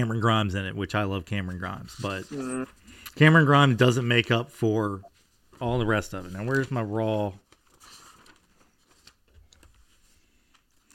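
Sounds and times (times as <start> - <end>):
speech: 0.0 - 7.4
shuffling through sheets of paper: 1.5 - 2.8, 5.1 - 10.9.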